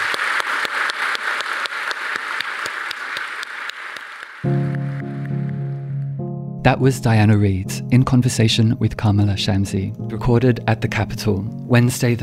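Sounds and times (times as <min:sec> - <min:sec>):
audience applause: 0:00.0 - 0:05.9
speech: 0:06.6 - 0:12.2.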